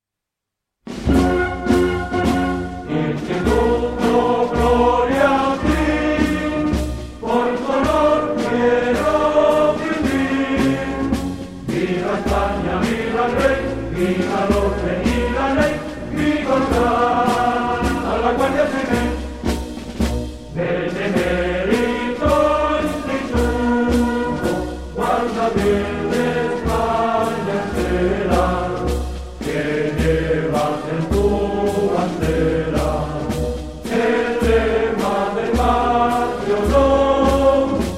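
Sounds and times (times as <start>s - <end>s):
anthem music: 0.9s - 37.9s.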